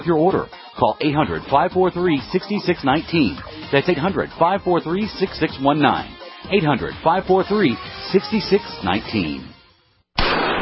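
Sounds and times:
speech: 0.0s - 9.5s
.44 Magnum gunshot fired at a Traumamax hybrid Kevlar bulletproof vest: 10.2s - 10.6s.

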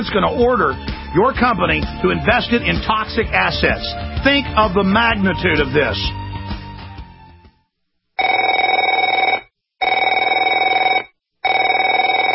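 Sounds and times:
speech: 0.0s - 6.2s
telephone ringing: 8.2s - 12.3s.

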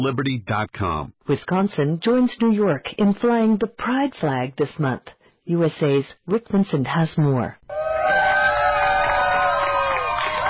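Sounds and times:
speech: 0.0s - 7.8s
crowd cheering at flag raising: 7.7s - 10.4s.

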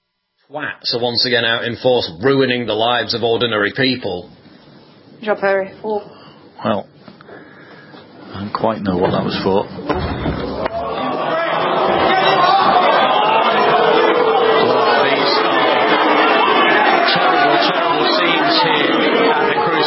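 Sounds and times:
speech: 0.5s - 4.4s, 5.2s - 6.9s, 8.4s - 10.3s
match crowd booing loudly: 10.4s - 19.8s.

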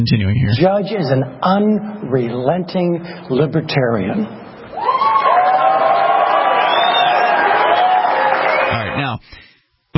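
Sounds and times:
speech: 0.0s - 4.9s
crowd cheering and whooping: 4.7s - 9.0s
audience applause: 4.8s - 9.1s.

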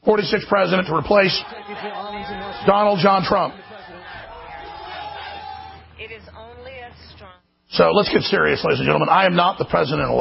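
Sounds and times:
speech: 0.1s - 3.6s, 7.7s - 10.1s
crowd cheering and shouting: 0.2s - 7.2s.

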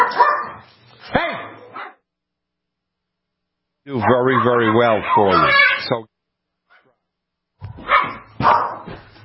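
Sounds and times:
dogs squabbling with barks and growly yaps: 0.0s - 2.0s, 4.0s - 5.9s, 7.7s - 9.0s
speech: 3.9s - 6.1s.

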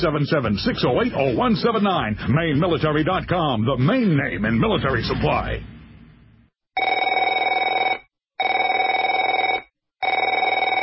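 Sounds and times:
speech: 0.0s - 5.7s
telephone ringing: 6.8s - 10.8s.

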